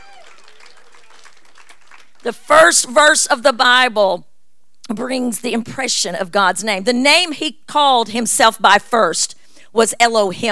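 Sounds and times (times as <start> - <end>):
audience hand clap of praise: 0.0 - 2.4
speech: 2.2 - 4.3, 4.9 - 10.4.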